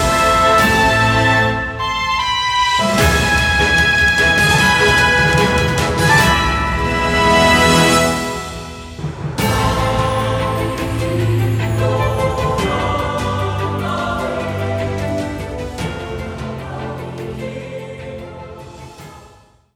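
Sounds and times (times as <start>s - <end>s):
orchestral background music: 0.0s - 19.1s.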